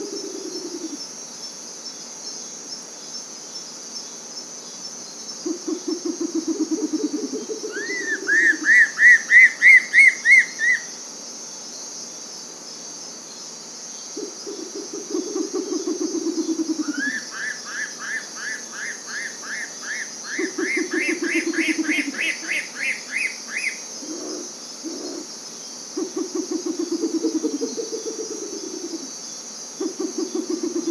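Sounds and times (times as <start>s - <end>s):
Bare legged owl calling: 5.5s - 10.9s, 14.2s - 25.3s, 26.0s - 29.1s, 29.8s - 30.9s.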